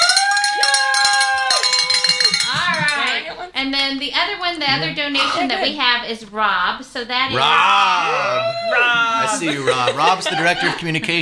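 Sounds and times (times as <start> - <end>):
bell rung for an anonymous donor: 0.0 - 3.2
laughter: 2.2 - 3.3, 8.0 - 11.1
speech: 3.6 - 11.1.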